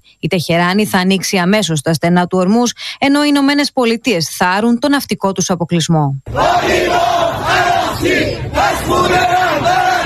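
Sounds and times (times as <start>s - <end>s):
speech: 0.1s - 9.8s
constant roar of many people: 6.3s - 10.0s
protesters chanting slogans in street: 6.3s - 10.0s.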